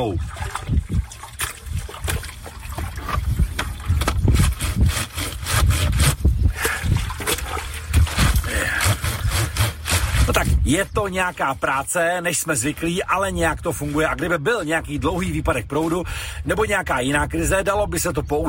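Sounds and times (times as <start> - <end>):
speech: 0.0 - 1.0, 10.7 - 18.4
scrubbing laundry on an old washboard: 1.8 - 14.3.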